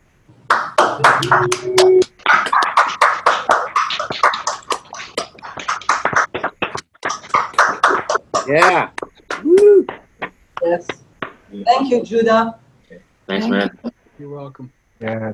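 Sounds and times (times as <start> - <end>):
applause and clapping: 0.5 - 10.3
speech: 1.0 - 2.1, 8.5 - 9.0, 10.7 - 11.0, 11.6 - 12.6, 13.4 - 15.3.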